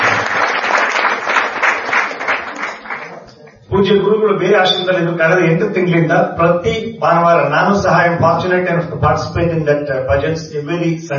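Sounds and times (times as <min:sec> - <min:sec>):
audience clapping at a devotional gathering: 0:00.0 - 0:03.7
speech: 0:03.8 - 0:11.1.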